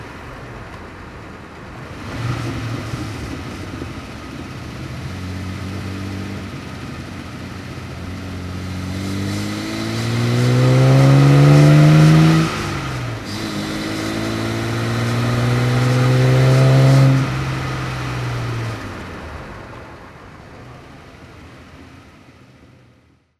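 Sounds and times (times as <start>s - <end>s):
Healey 3000 Mk1 car driving: 0.0s - 23.3s.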